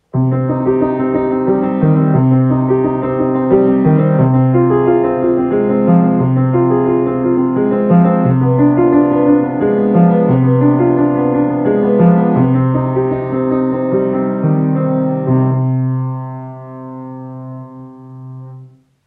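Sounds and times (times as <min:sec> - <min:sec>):
prelude in C minor: 0:00.0 - 0:18.8.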